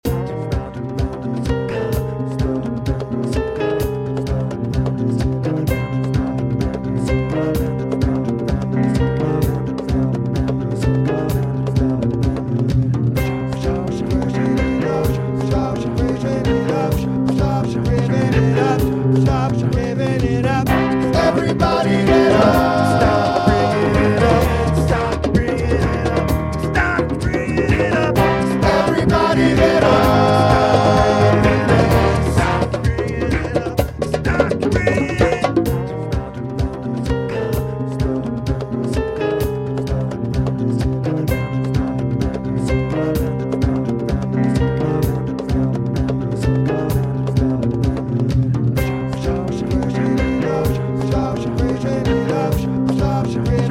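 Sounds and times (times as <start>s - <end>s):
music loop: 0.0s - 53.6s.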